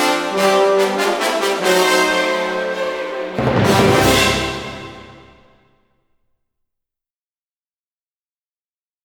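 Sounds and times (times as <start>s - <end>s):
orchestra playing presto: 0.0s - 5.6s.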